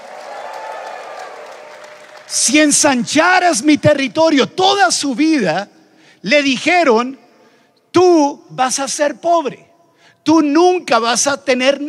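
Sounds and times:
crowd shouting and cheering with joy: 0.0 - 2.4
crowd clapping: 0.0 - 3.1
speech: 2.3 - 7.2, 7.9 - 11.8.

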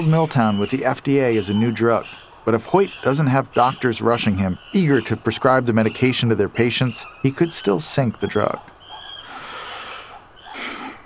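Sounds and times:
speech: 0.0 - 8.8
man taking a deep breath: 9.2 - 11.0.

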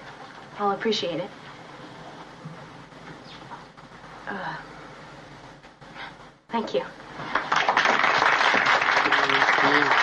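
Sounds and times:
speech: 0.6 - 1.4, 4.3 - 4.7, 6.5 - 7.0
crowd clapping: 7.3 - 10.0
cheers: 7.6 - 10.0.

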